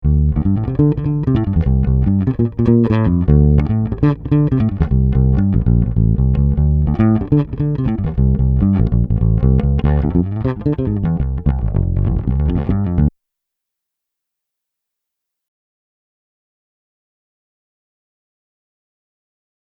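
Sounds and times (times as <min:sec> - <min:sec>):
bass through Chandler TG 1 with harmonic distortion: 0:00.0 - 0:13.1.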